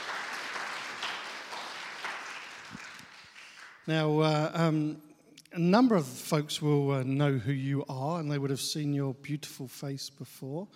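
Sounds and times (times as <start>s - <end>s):
crowd applauding: 0.0s - 3.9s
speech: 3.9s - 10.7s.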